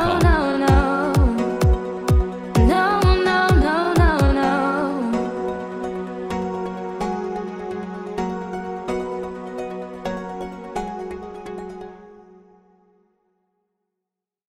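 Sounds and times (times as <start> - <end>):
summer vocal music mix: 0.0 - 8.0.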